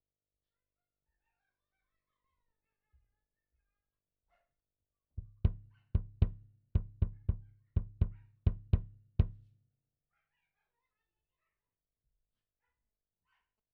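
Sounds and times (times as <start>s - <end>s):
kick drum: 5.2s - 9.5s.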